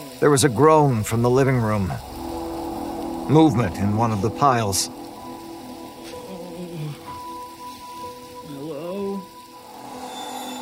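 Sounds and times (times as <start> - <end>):
bathroom faucets running: 0.0 - 10.6
speech: 0.2 - 2.2, 3.3 - 5.0.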